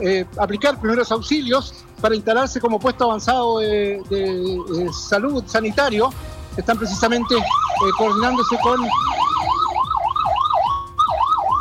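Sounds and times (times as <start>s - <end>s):
speech: 0.0s - 9.2s
fire engine siren wailing through heavy traffic: 4.0s - 11.5s.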